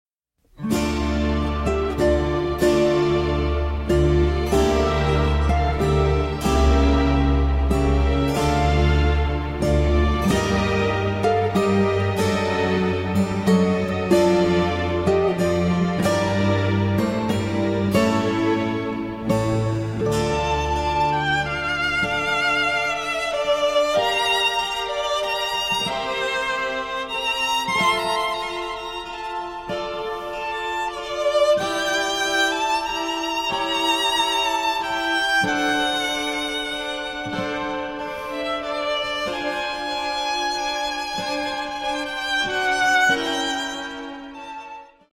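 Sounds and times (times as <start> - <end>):
concerto for two violins and cello: 0.6 - 45.1.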